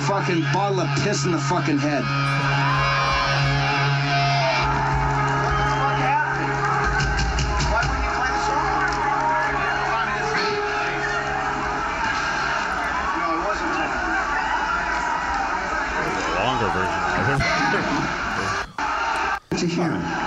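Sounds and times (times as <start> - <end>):
concert crowd booing: 0.0 - 20.2
speech: 0.1 - 2.6
laughter: 15.8 - 19.4.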